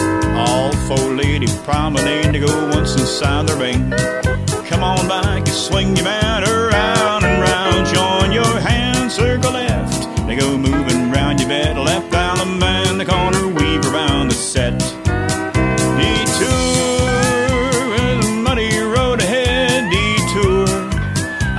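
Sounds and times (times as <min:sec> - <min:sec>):
vocals: 0:00.1 - 0:21.5.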